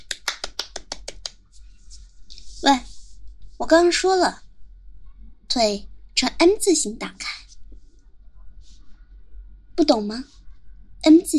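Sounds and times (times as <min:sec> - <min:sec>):
hand claps: 0:00.0 - 0:01.4
speech: 0:02.6 - 0:02.9, 0:03.6 - 0:04.4, 0:05.5 - 0:07.3, 0:09.8 - 0:10.4, 0:11.0 - 0:11.3.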